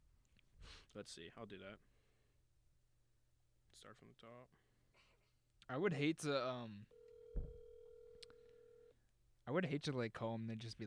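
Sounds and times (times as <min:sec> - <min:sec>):
speech: 0:00.9 - 0:01.9, 0:03.8 - 0:04.7, 0:05.7 - 0:07.6, 0:09.5 - 0:10.8
phone ringing tone: 0:06.9 - 0:09.0.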